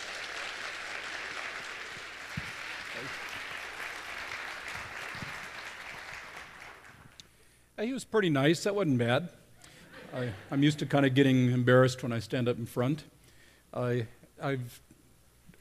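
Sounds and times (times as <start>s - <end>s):
audience applause welcoming a speaker for a morning Q&A session: 0.0s - 7.2s
speech: 3.0s - 3.4s, 7.8s - 9.4s, 10.1s - 13.1s, 13.7s - 14.9s.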